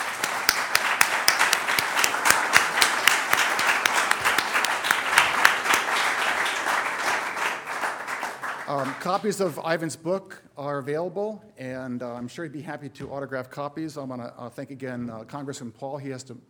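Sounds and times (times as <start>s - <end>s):
audience applause: 0.0s - 9.2s
speech: 8.7s - 16.4s.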